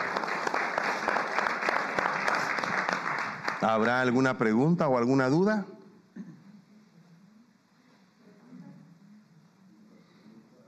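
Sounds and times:
audience applause: 0.0s - 4.1s
speech: 3.6s - 5.7s.

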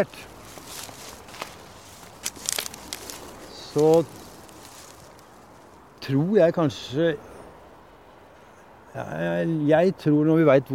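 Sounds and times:
speech: 0.0s - 0.3s, 3.7s - 4.2s, 6.1s - 7.3s, 9.0s - 10.7s
footsteps crunching down a slope on old seabed: 0.0s - 5.9s.

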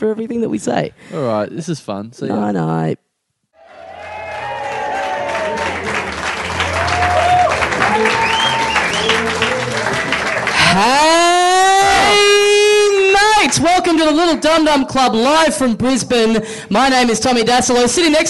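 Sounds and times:
speech: 0.0s - 3.1s, 10.8s - 11.2s, 13.5s - 18.2s
loud rising drawn-out whoop: 3.6s - 6.0s, 6.6s - 12.9s
crowd clapping with cheers and whistles: 3.6s - 14.4s.

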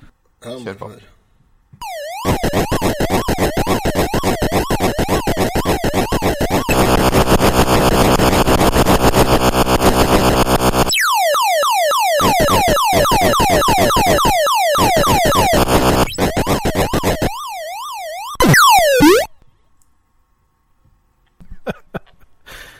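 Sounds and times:
speech: 0.4s - 1.2s
Atari 2600 video game sound effects: 1.8s - 19.3s.

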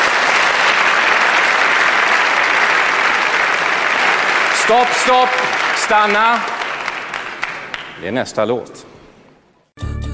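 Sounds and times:
audience applause: 0.0s - 8.0s
speech: 4.7s - 6.5s, 8.0s - 8.9s.

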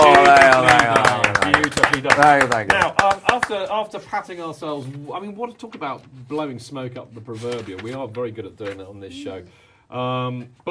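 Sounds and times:
few people clapping: 0.0s - 4.0s
speech: 2.2s - 10.6s.

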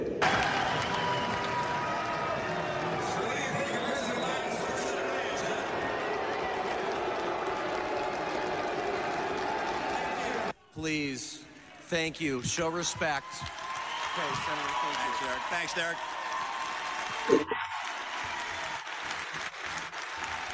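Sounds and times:
clapping: 0.2s - 10.5s, 13.2s - 20.5s
convention delegates loudly booing: 0.2s - 10.6s, 13.1s - 18.9s
speech: 10.8s - 13.6s, 14.2s - 16.2s.

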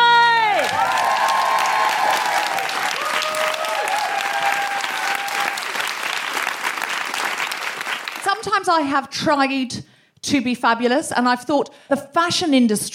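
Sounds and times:
audience applause welcoming a comedian at a live show: 0.4s - 8.4s
speech: 8.7s - 12.9s.

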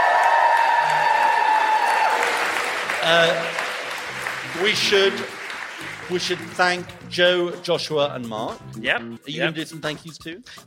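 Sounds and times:
live audience clapping and cheering at the end of a show in Sheffield: 0.0s - 7.2s
speech: 3.0s - 3.6s, 4.6s - 10.6s.

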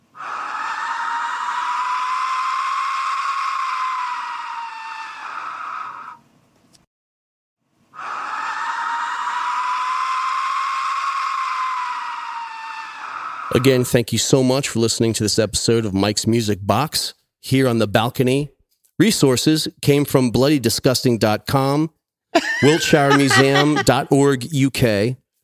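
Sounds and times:
skull whistle high-pitched screaming noise: 0.2s - 6.2s, 8.0s - 13.6s
speech: 13.6s - 22.0s, 22.6s - 25.2s
laughter: 22.4s - 24.4s.

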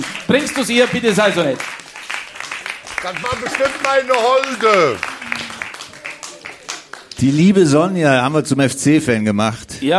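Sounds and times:
audience applause: 0.0s - 7.5s
speech: 0.3s - 1.8s, 3.0s - 5.1s, 7.2s - 9.9s.

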